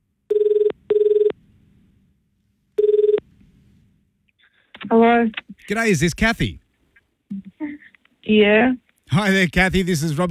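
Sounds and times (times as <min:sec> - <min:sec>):
outgoing telephone call ringing tone: 0:00.3 - 0:01.4, 0:02.8 - 0:03.2
speech: 0:04.9 - 0:06.6, 0:08.3 - 0:10.3.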